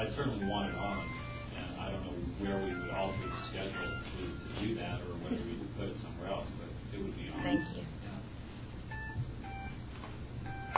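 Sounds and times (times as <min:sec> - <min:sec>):
constant low hum: 0:00.0 - 0:10.7
new mobile phone beeping: 0:00.4 - 0:01.6, 0:02.5 - 0:04.6, 0:07.4 - 0:07.8, 0:08.9 - 0:09.8, 0:10.4 - 0:10.7
speech: 0:02.4 - 0:08.1.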